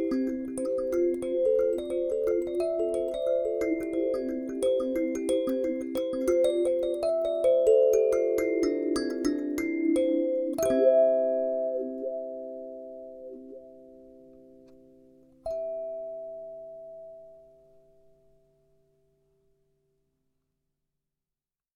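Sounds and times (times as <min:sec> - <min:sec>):
Sansa thumb piano in C major: 0:00.0 - 0:17.2.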